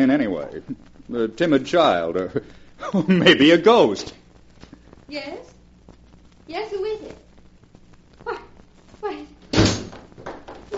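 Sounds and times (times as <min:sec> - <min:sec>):
speech: 0:00.0 - 0:04.2, 0:05.1 - 0:05.5, 0:06.5 - 0:07.2
wooden door thud: 0:09.5 - 0:10.6.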